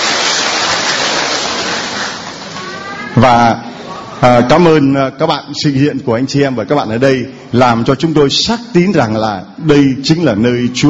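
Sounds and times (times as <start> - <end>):
applause: 0.0 - 2.6
speech: 3.2 - 10.8.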